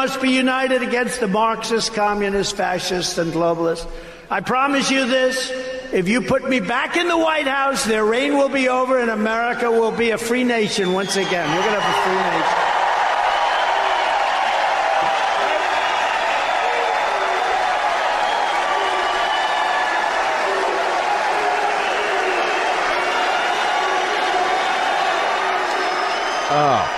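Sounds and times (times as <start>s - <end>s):
speech: 0.0s - 12.7s
rally crowd cheering: 11.0s - 26.9s
whoops and shouts: 11.4s - 26.9s.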